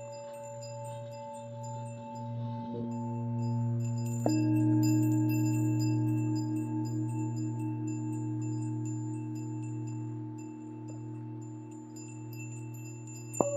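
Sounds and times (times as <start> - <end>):
Tibetan singing bowls ringing: 0.0 - 13.5
faint high tinkles: 0.0 - 13.5.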